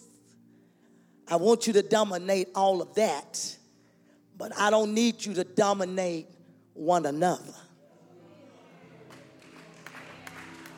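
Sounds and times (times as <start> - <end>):
speech: 1.3 - 3.6, 4.4 - 7.6
audience clapping: 8.8 - 10.7.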